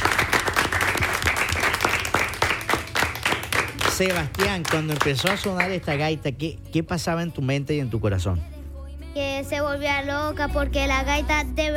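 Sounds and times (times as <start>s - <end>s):
audience applause: 0.0s - 6.1s
speech: 4.0s - 8.6s, 9.2s - 11.7s.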